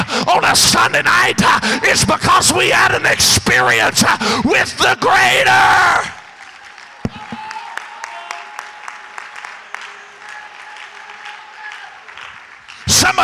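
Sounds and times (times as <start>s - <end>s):
speech: 0.3s - 6.2s, 13.1s - 13.2s
audience applause: 6.0s - 13.2s.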